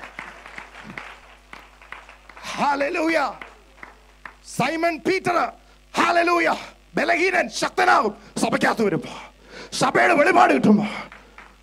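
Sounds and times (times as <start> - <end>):
audience clapping: 0.0 - 4.6, 10.7 - 11.6
speech: 2.6 - 3.4, 4.5 - 11.1.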